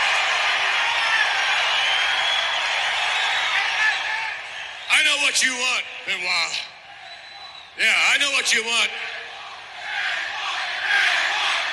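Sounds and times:
large arena wrestling crowd roaring and chanting: 0:00.0 - 0:04.8, 0:08.8 - 0:11.7
speech: 0:05.0 - 0:06.8, 0:07.8 - 0:09.1.

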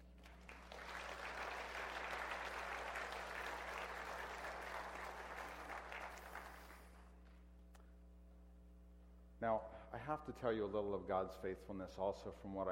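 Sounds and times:
audience applause: 0:00.0 - 0:07.1
speech: 0:09.4 - 0:12.7.

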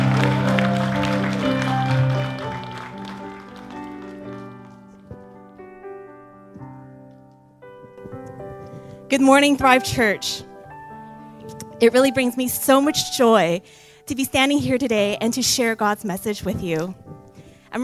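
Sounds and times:
church congregation clapping for a preacher: 0:00.0 - 0:04.9
speech: 0:09.1 - 0:10.5, 0:11.8 - 0:17.8.

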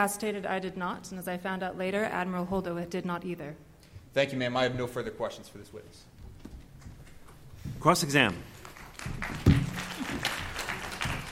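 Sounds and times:
speech: 0:00.0 - 0:06.1, 0:07.8 - 0:09.6
audience applause: 0:08.6 - 0:11.3.

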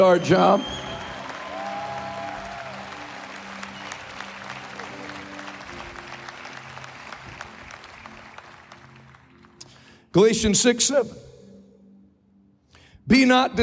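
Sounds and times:
speech: 0:00.0 - 0:00.8, 0:10.1 - 0:11.2, 0:13.1 - 0:13.6
audience applause for musicians: 0:00.0 - 0:09.6.

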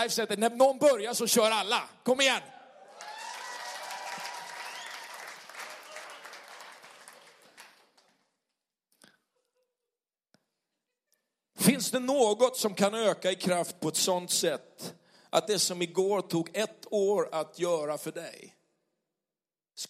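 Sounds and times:
speech: 0:00.0 - 0:02.6, 0:11.9 - 0:18.6
cheering voices: 0:02.4 - 0:07.4
audience applause: 0:02.9 - 0:08.3.

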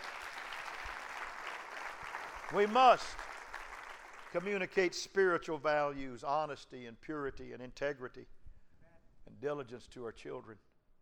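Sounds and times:
audience clapping hands: 0:00.0 - 0:04.8
speech: 0:02.5 - 0:03.2, 0:04.3 - 0:08.4, 0:09.3 - 0:10.7.

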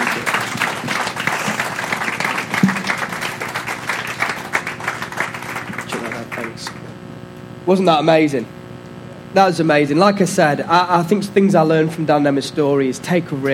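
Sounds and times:
audience applause: 0:00.0 - 0:06.8
speech: 0:07.7 - 0:08.6, 0:09.3 - 0:13.5.

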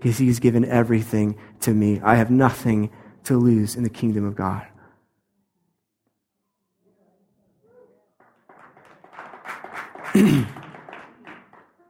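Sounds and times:
speech: 0:00.0 - 0:04.7, 0:10.1 - 0:10.6
light golf clap from audience: 0:08.2 - 0:11.8.

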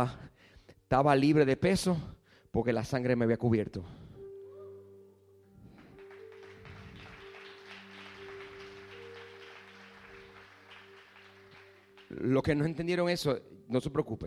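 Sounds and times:
speech: 0:00.0 - 0:00.3, 0:00.9 - 0:04.0, 0:12.1 - 0:14.2
audience applauding: 0:05.7 - 0:12.8.

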